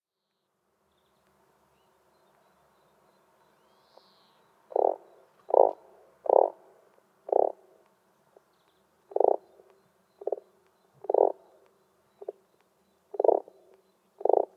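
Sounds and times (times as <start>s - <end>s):
frog giving short buzzy pulsed croaks: 4.7s - 6.6s, 7.2s - 7.7s, 9.1s - 11.6s, 12.2s - 12.4s, 13.1s - 14.5s.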